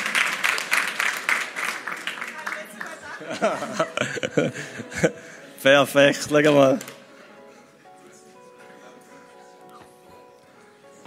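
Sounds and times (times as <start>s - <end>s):
applause: 0.0s - 3.5s
laughter: 2.6s - 5.5s
speech: 3.2s - 6.9s.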